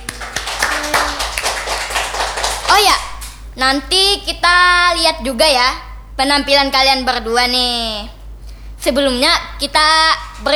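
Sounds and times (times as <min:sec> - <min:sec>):
audience clapping for two guests on a TV show: 0:00.0 - 0:03.4
speech: 0:02.8 - 0:08.2, 0:08.8 - 0:10.5.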